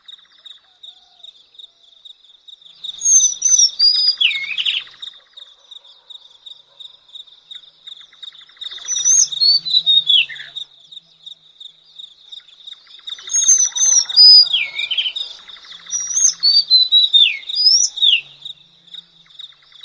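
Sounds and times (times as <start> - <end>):
Madagascar magpie-robin whistled slurs and chirps: 3.0 - 4.9, 8.8 - 10.6, 13.2 - 18.3.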